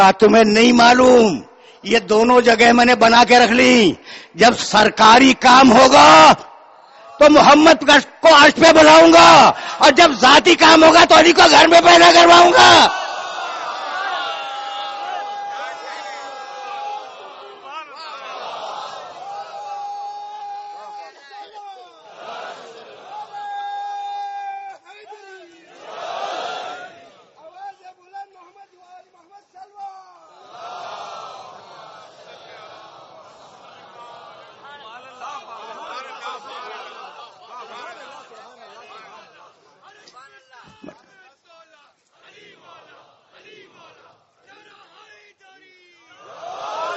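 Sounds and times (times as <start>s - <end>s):
speech: 0.0s - 6.5s, 7.2s - 13.0s
crowd chanting slogans at a gathering: 12.8s - 19.7s, 22.0s - 23.4s, 25.5s - 27.4s, 30.3s - 39.9s, 42.1s - 45.2s, 46.0s - 46.9s.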